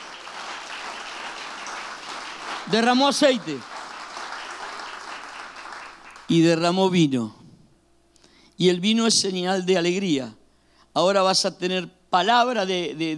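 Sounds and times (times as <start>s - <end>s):
audience applauding: 0.0s - 6.4s
speech: 2.7s - 3.7s, 6.3s - 7.4s, 8.6s - 10.4s, 11.0s - 13.1s.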